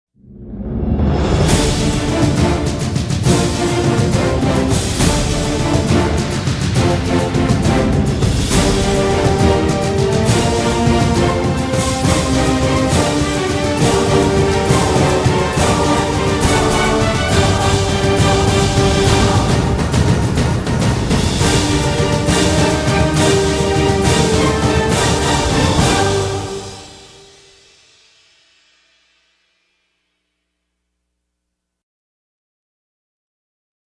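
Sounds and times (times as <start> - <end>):
grand real estate advertising music: 1.1 - 27.6.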